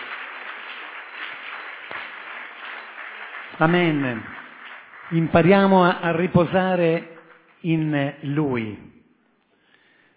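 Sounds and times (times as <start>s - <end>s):
audience applause: 0.0s - 7.6s
speech: 3.6s - 4.4s, 5.1s - 9.0s.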